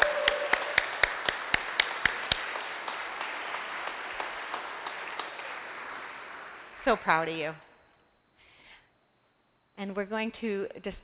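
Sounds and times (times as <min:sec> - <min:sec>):
church congregation applauding: 0:00.0 - 0:07.5
speech: 0:06.8 - 0:07.7, 0:09.8 - 0:11.0.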